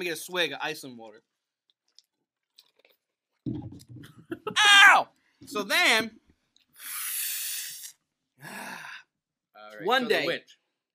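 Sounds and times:
speech: 0.0 - 1.4, 3.4 - 6.2, 9.6 - 10.6
person chewing food: 1.6 - 3.4.

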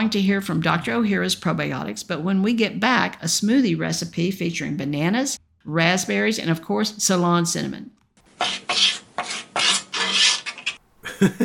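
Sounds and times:
speech: 0.0 - 9.3, 11.2 - 11.4
scratching at a door: 8.2 - 10.8
laughter: 11.0 - 11.4.

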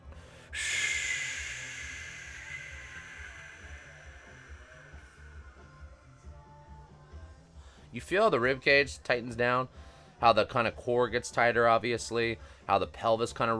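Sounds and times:
long breathy exhalation during a core and mobility exercise: 0.0 - 6.2
faint low hum: 0.2 - 6.2
speech: 8.0 - 13.5.

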